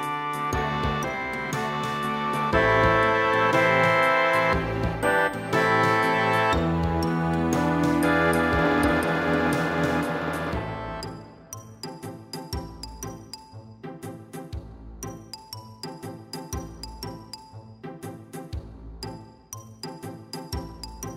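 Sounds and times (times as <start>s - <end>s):
sinfonia: 0.0s - 14.5s.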